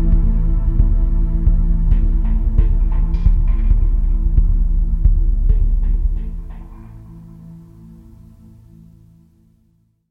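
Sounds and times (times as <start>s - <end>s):
percussion: 0.0s - 7.6s.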